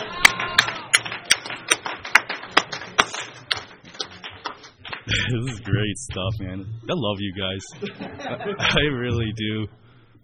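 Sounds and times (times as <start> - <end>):
audience applause: 0.0 - 5.7
laughter: 5.0 - 5.9, 7.4 - 9.2
speech: 5.1 - 10.2.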